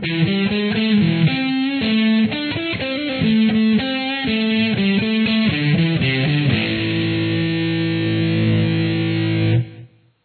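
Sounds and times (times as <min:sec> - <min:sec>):
guitar: 0:00.0 - 0:10.2.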